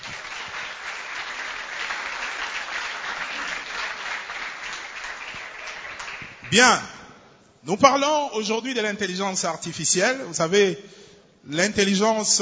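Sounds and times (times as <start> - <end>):
audience applause: 0.0 - 6.6
speech: 6.5 - 7.0, 7.6 - 12.4.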